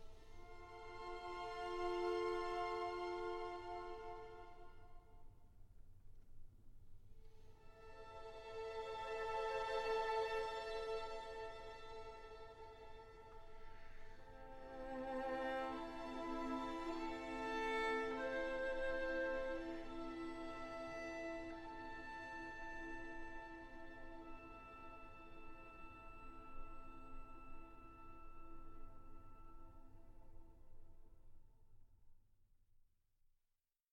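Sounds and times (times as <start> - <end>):
cello and orchestra: 0.0 - 5.0, 7.6 - 29.2.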